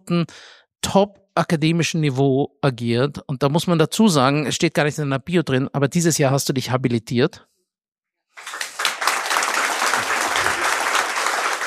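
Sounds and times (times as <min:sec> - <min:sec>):
speech: 0:00.1 - 0:07.5
audience applause: 0:08.4 - 0:11.6.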